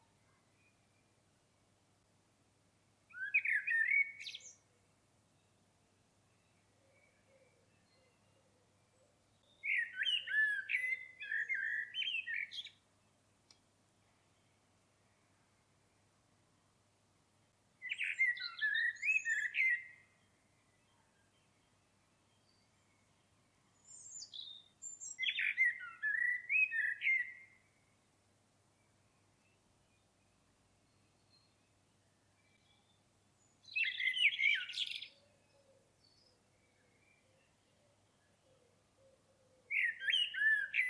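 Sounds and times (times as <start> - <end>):
common blackbird singing: 3.1 - 4.7, 6.4 - 12.8, 17.8 - 20.2, 23.8 - 27.8, 32.3 - 40.8.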